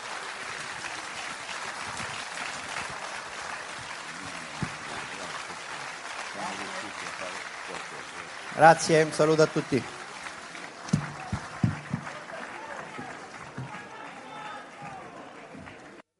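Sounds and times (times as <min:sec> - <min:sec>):
audience applause: 0:00.0 - 0:16.0
speech: 0:08.6 - 0:10.0.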